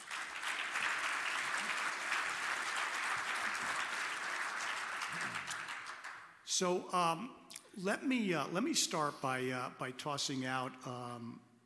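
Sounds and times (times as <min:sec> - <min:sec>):
audience applause: 0:00.0 - 0:06.3
speech: 0:06.6 - 0:11.5.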